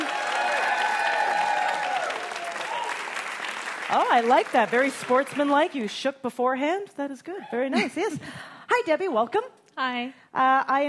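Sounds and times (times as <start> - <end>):
game show audience applauding: 0.0 - 5.7
speech: 3.9 - 10.8.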